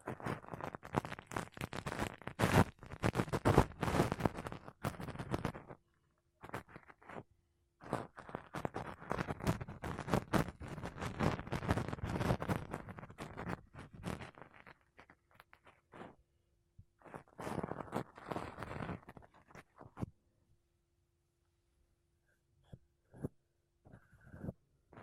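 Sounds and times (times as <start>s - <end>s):
makeup brushes and a sponge rubbed over a mic: 0.0s - 5.8s, 6.4s - 7.2s, 7.8s - 16.2s, 17.0s - 20.1s.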